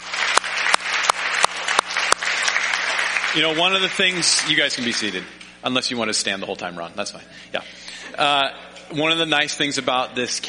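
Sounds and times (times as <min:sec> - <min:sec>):
audience applause: 0:00.0 - 0:05.3
speech: 0:03.3 - 0:10.4.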